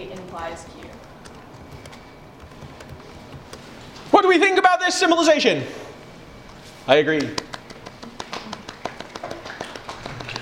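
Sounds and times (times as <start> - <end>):
speech: 0.3 - 1.1, 4.2 - 5.8, 6.9 - 7.5
audience clapping: 7.2 - 10.4.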